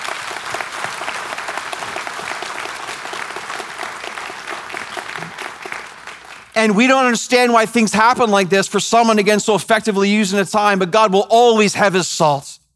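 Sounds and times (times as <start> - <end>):
audience clapping: 0.0 - 7.2
speech: 6.6 - 12.7.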